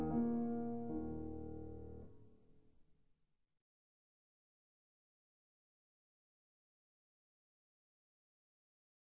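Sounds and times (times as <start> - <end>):
piano prelude in E flat minor: 0.0 - 2.1.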